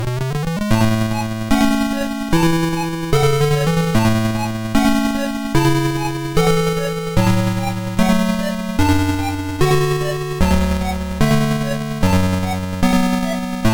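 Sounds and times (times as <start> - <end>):
stage background music: 0.1 - 13.7.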